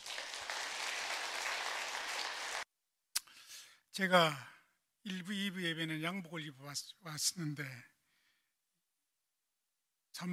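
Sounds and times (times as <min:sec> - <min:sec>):
audience applause welcoming a guest speaker: 0:00.0 - 0:02.6
speech: 0:04.0 - 0:07.9.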